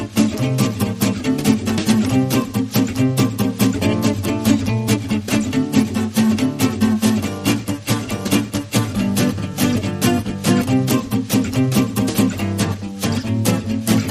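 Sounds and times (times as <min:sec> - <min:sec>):
drums: 0:00.0 - 0:14.1
guitars: 0:00.0 - 0:14.1.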